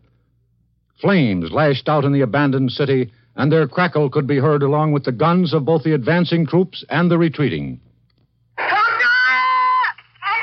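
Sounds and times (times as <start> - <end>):
faint low hum: 0.0 - 10.4
speech: 1.0 - 7.9
young boy screaming for his parents: 8.6 - 10.4.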